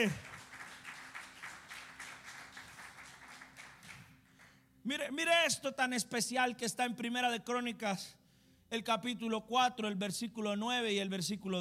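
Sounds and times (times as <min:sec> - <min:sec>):
speech: 0:00.0 - 0:00.3, 0:04.8 - 0:11.5
applause: 0:00.0 - 0:04.6.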